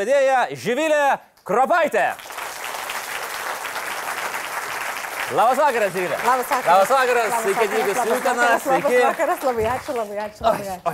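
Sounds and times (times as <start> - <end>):
speech: 0.0 - 2.3, 5.3 - 10.9
hall audience applause at an evening event in Utena: 2.2 - 10.1.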